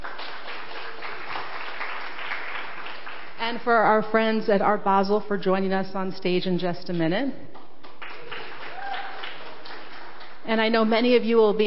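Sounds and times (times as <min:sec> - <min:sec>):
audience applause: 0:00.0 - 0:03.4, 0:08.0 - 0:10.4
speech: 0:03.4 - 0:07.5, 0:10.5 - 0:11.6.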